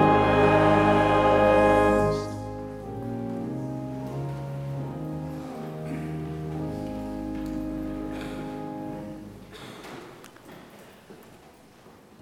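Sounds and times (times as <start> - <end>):
hymn: 0.0 - 3.6.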